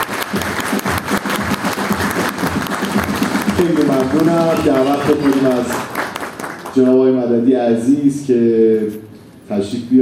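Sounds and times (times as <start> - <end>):
audience clapping for an honoured guest at a celebration: 0.0 - 7.2
speech: 3.6 - 5.9, 6.8 - 10.0.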